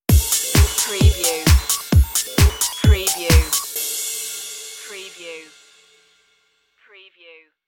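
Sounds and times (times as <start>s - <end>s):
disco stinger: 0.1s - 5.0s.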